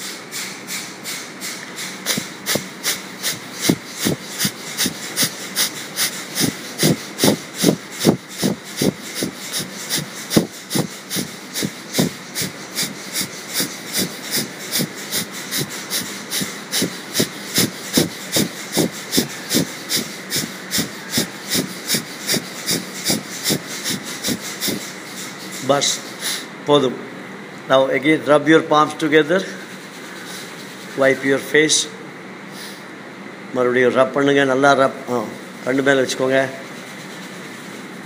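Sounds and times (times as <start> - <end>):
kapalabhati forceful nasal exhalations: 2.1 - 25.0
speech: 26.7 - 27.0, 27.7 - 29.6, 31.0 - 32.0, 33.6 - 36.6.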